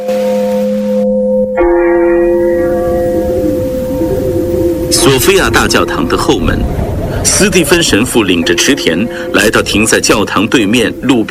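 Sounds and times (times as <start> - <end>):
church bell tolling slowly: 0.0 - 11.3
speech: 5.0 - 11.3.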